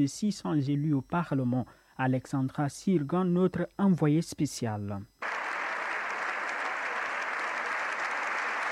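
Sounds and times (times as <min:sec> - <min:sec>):
speech: 0:00.0 - 0:05.1
sustained applause from a large crowd in a parliament chamber: 0:05.2 - 0:08.7.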